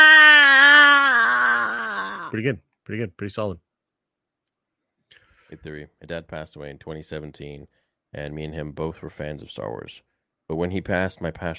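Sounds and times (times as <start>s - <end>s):
man imitating a character's scream: 0.0s - 2.4s
speech: 2.3s - 3.6s, 5.5s - 11.5s.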